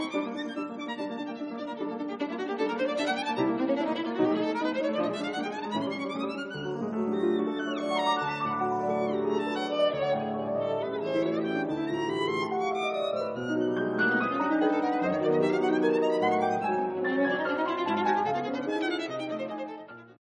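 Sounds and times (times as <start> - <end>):
fast violin and piano sonata movement: 0.0 - 20.1.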